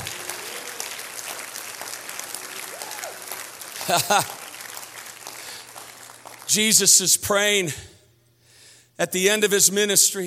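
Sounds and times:
faint cheers and voices: 0.0 - 1.1, 2.3 - 3.4
audience clapping hands: 0.0 - 7.0
laughter: 3.8 - 4.5
speech: 3.9 - 4.4, 6.5 - 8.0, 9.0 - 10.2.

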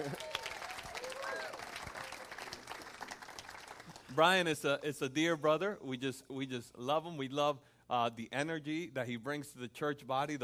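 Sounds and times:
church congregation applauding to welcome a man: 0.0 - 4.6
speech: 4.2 - 10.4.

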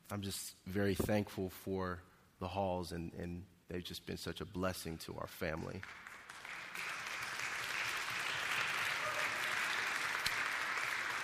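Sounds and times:
speech: 0.1 - 6.1
audience applause: 5.8 - 11.2.

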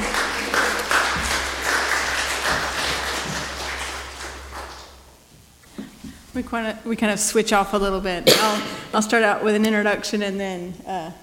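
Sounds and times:
audience applauding to welcome two speakers: 0.0 - 5.3
speech: 6.4 - 11.2.

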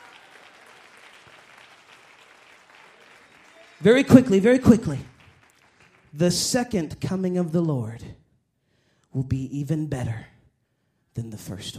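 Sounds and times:
audience clapping hands: 0.0 - 7.3
speech: 3.8 - 5.1, 6.2 - 8.2, 9.2 - 10.3, 11.2 - 11.7.

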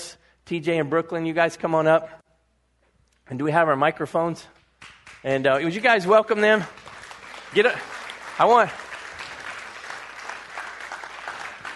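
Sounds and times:
speech: 0.5 - 2.2, 3.3 - 4.6, 5.2 - 6.8, 7.5 - 8.8
audience clapping: 4.7 - 11.7.

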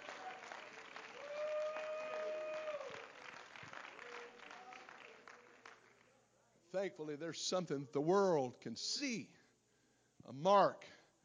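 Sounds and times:
audience clapping: 0.0 - 6.1
speech: 6.7 - 9.4, 10.3 - 11.0.

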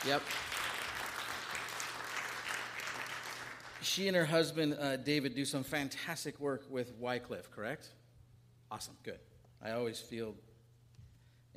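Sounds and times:
speech: 0.0 - 0.6, 3.8 - 8.0, 8.7 - 10.5
crowd applause: 0.0 - 3.8.

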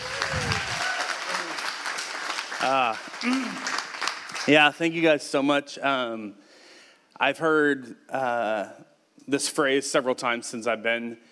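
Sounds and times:
crowd whooping: 0.0 - 1.9
audience applause: 0.0 - 4.6
speech: 2.6 - 3.7, 4.4 - 6.4, 7.2 - 11.3.

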